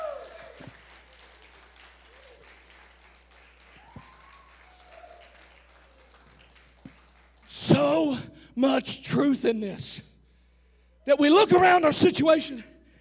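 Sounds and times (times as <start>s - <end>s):
church audience hand clapping: 0.0s - 8.1s
speech: 7.8s - 10.1s, 11.1s - 12.7s.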